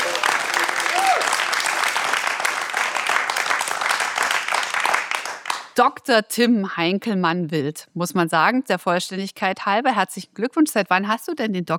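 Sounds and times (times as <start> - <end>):
live audience applause: 0.0 - 5.7
speech: 5.8 - 11.7.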